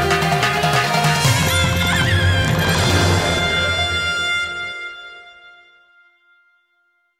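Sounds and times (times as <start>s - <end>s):
commercial intro jingle: 0.2s - 5.3s.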